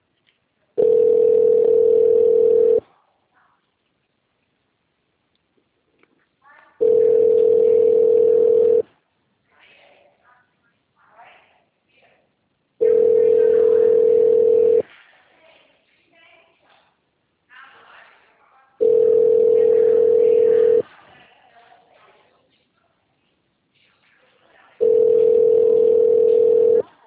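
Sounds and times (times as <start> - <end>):
telephone ringback tone while a call connects: 0.8 - 2.8, 6.8 - 8.8, 12.8 - 14.8, 18.8 - 20.8, 24.8 - 26.8.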